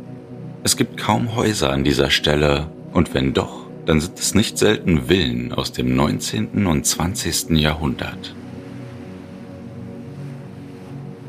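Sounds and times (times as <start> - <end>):
speech: 0.6 - 8.4
surf from sea waves on a beach: 6.9 - 11.2.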